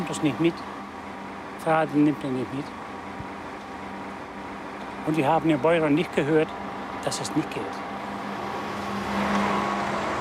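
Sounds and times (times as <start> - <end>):
bus driving away: 0.0 - 10.1
speech: 0.1 - 0.8, 1.6 - 2.8, 5.0 - 7.8.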